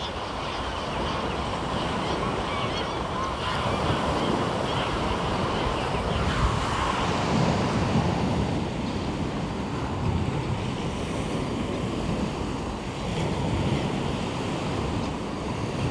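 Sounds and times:
bird life along Omø coastline: 0:00.0 - 0:15.8
waves along Omø coastline: 0:00.0 - 0:15.8.

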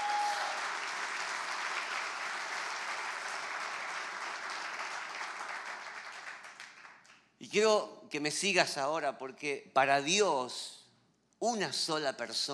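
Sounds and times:
audience applause: 0:00.0 - 0:07.1
speech: 0:07.4 - 0:10.8, 0:11.4 - 0:12.5.

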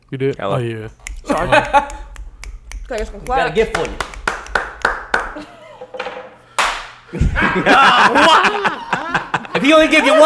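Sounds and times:
speech: 0:00.1 - 0:02.0, 0:02.9 - 0:04.1, 0:07.1 - 0:08.8, 0:09.6 - 0:10.2
single stern hand clap: 0:00.9 - 0:05.5, 0:06.6 - 0:07.0
people talking and laughing: 0:00.9 - 0:06.1, 0:07.1 - 0:10.2.

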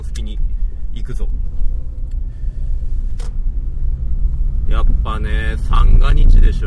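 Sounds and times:
cars passing on road: 0:00.0 - 0:06.6
speech: 0:01.0 - 0:01.6, 0:04.7 - 0:06.6.

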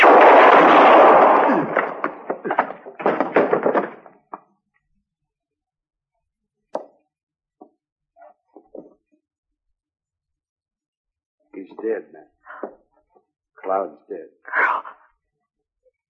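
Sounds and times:
gunshots: 0:00.0 - 0:04.2.

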